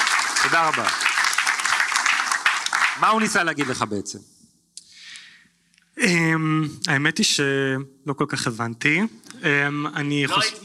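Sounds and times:
enthusiastic applause: 0.0s - 4.0s
speech: 0.4s - 1.1s, 3.0s - 4.4s, 6.0s - 10.6s.

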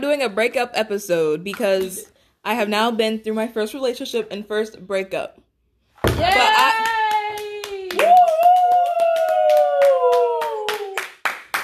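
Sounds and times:
speech: 0.0s - 5.4s, 6.1s - 7.0s
people clapping: 6.2s - 11.6s.

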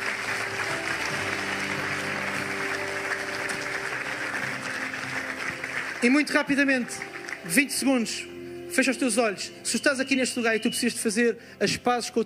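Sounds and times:
audience applause: 0.0s - 7.9s
soft sustained musical tones: 0.0s - 12.1s
speech: 6.0s - 12.2s.

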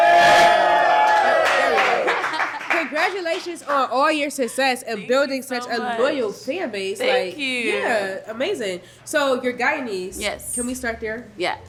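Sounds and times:
audience cheering and whooping for a guest singer and actress: 0.0s - 2.7s
laughter: 1.6s - 3.2s
speech: 3.1s - 11.6s.

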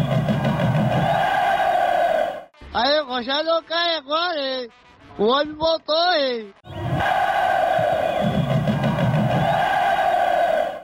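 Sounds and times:
football fans cheering and chanting in recorded audio: 0.0s - 2.5s, 6.7s - 10.8s
speech: 2.8s - 7.3s.

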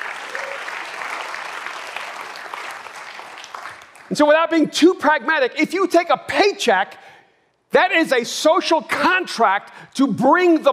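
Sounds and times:
audience applause: 0.0s - 4.1s
speech: 4.1s - 7.1s, 7.7s - 10.7s.

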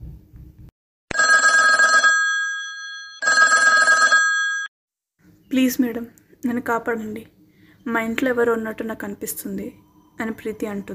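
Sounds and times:
telephone ringing with an incoming call to a police inspector: 1.1s - 4.7s
speech: 5.5s - 10.9s.

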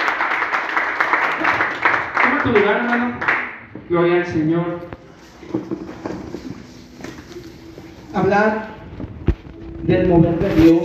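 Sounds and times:
audience clapping hands: 0.0s - 3.7s
speech: 2.4s - 6.3s, 8.1s - 8.7s, 9.8s - 10.8s.

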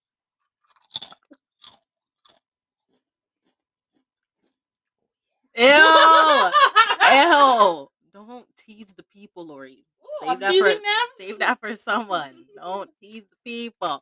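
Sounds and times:
crunchy chips being eaten for ASMR: 0.4s - 4.6s
laughter: 5.6s - 7.8s, 10.1s - 11.7s
speech: 10.4s - 14.0s.

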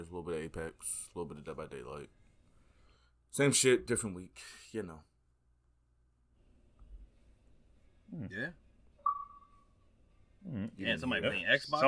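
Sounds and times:
speech: 0.0s - 2.2s, 3.3s - 5.1s, 8.1s - 8.6s, 10.4s - 11.8s
electronic beep from an Xbox console: 9.0s - 9.8s.

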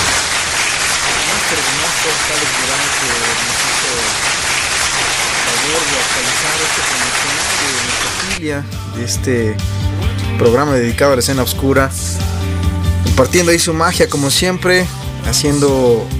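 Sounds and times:
applause: 0.0s - 8.4s
speech: 8.5s - 12.4s, 13.2s - 16.1s.

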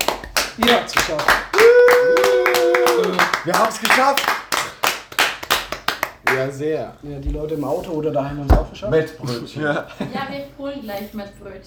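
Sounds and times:
hands clapping: 0.0s - 6.5s
speech: 0.6s - 2.2s, 3.0s - 4.3s, 6.3s - 11.6s.

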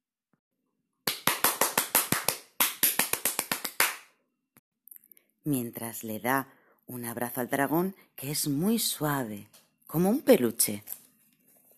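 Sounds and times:
hands clapping: 1.0s - 4.2s
speech: 5.4s - 11.0s.

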